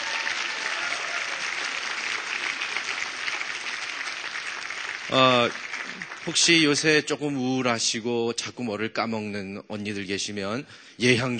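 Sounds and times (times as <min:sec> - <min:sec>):
audience applause: 0:00.0 - 0:07.1
speech: 0:05.1 - 0:05.6, 0:06.3 - 0:11.3.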